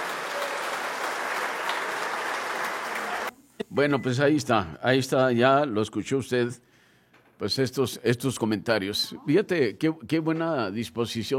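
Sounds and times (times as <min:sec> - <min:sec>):
audience applause: 0:00.0 - 0:03.3
speech: 0:03.7 - 0:06.7, 0:07.4 - 0:11.3.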